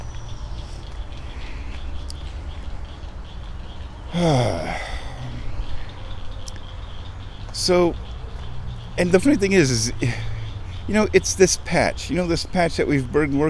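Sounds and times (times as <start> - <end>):
frog chorus in a pond: 0.0 - 13.4
louder tonal frog croak: 2.9 - 7.4
speech: 4.1 - 4.8, 7.6 - 8.1, 9.0 - 10.3, 10.9 - 13.4.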